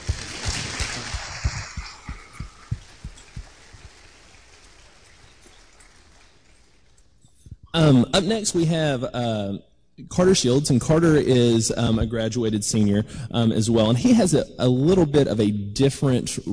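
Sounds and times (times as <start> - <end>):
audience applause: 0.0 - 7.0
speech: 7.8 - 16.5.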